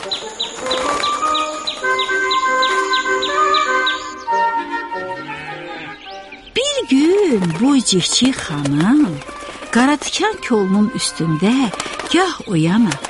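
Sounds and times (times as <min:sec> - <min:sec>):
sparrow chirping: 0:00.0 - 0:11.5
speech: 0:07.3 - 0:13.0.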